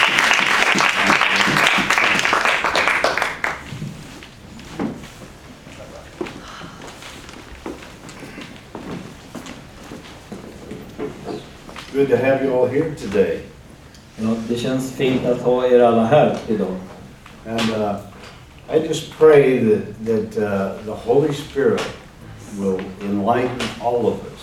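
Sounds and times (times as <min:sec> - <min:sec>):
audience applause: 0:00.0 - 0:03.8
speech: 0:12.0 - 0:13.5, 0:14.2 - 0:18.1, 0:18.7 - 0:22.0, 0:22.6 - 0:24.4.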